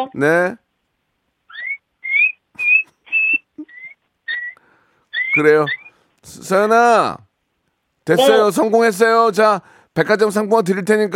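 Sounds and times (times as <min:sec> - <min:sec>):
speech: 0:00.0 - 0:00.6, 0:05.4 - 0:07.3, 0:08.0 - 0:11.1
child imitating mouse squeaks: 0:01.5 - 0:05.9, 0:08.2 - 0:08.4.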